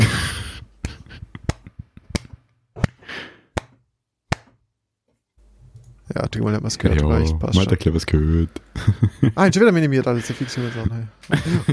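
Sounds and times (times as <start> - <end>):
hand clapping: 0.8 - 4.6
speech: 6.2 - 11.7
laughter: 8.7 - 11.7.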